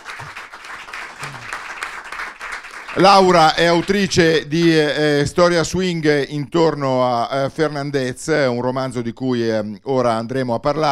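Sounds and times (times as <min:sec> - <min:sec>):
audience applause: 0:00.0 - 0:03.8
speech: 0:02.9 - 0:10.8.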